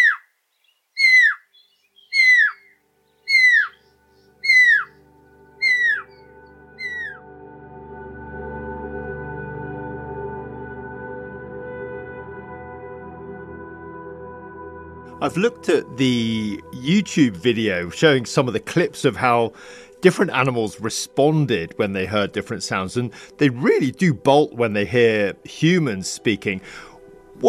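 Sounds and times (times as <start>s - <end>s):
bright whistled bird calls sliding downward: 0.0s - 5.0s, 5.6s - 7.2s
speech: 15.2s - 27.4s.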